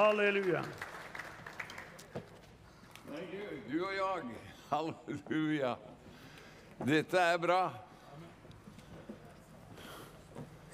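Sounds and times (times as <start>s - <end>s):
speech: 0.0s - 0.9s, 3.1s - 6.0s, 6.8s - 8.3s
audience applause: 0.0s - 2.1s.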